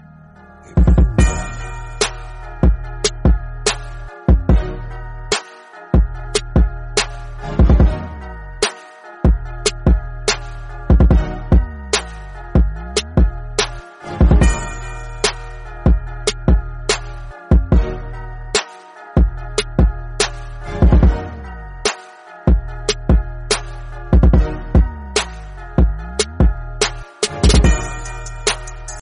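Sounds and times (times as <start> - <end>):
iPhone remix ringtone: 0.4 - 29.0.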